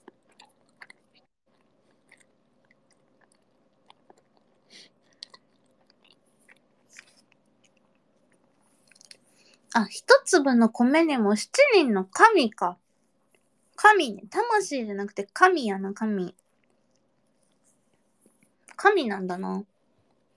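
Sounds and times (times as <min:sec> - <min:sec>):
person chewing food: 0:00.0 - 0:09.7, 0:13.1 - 0:13.6, 0:16.3 - 0:18.8
speech: 0:09.8 - 0:12.8, 0:13.9 - 0:16.4, 0:18.8 - 0:19.7.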